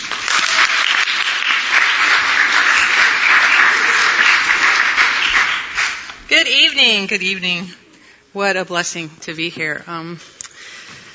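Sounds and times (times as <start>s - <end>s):
audience applause welcoming a speaker to the stage: 0.0s - 6.2s
speech: 6.8s - 7.8s, 8.4s - 10.4s.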